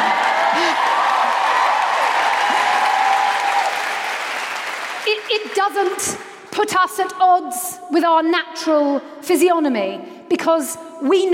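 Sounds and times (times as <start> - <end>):
crowd cheering with scattered whoops: 0.0 - 4.9
crowd clapping: 0.0 - 6.2
speech: 5.7 - 11.3.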